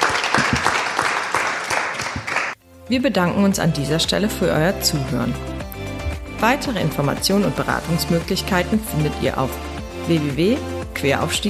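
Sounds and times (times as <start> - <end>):
applause from an audience: 0.0 - 2.6
speech: 2.9 - 5.5, 6.4 - 11.4.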